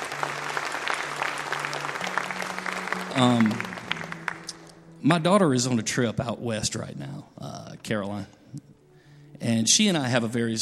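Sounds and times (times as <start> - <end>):
audience clapping: 0.0 - 4.8
speech: 3.2 - 3.7, 5.0 - 8.7, 9.4 - 10.6.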